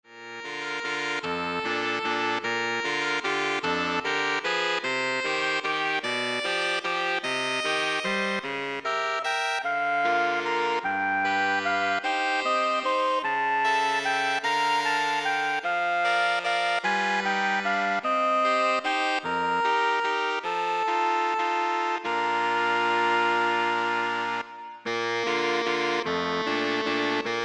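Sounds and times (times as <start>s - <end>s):
saxophone ensemble: 0.4s - 27.4s.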